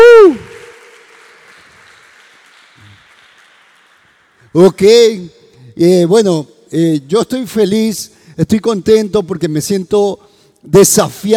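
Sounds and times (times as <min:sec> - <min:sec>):
audience applause: 0:00.0 - 0:04.6
speech: 0:04.6 - 0:11.3.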